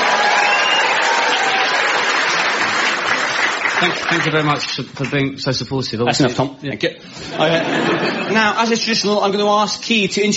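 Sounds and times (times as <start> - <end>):
group applause: 0.0 - 5.3
speech: 3.8 - 10.3
laughter: 7.2 - 8.6.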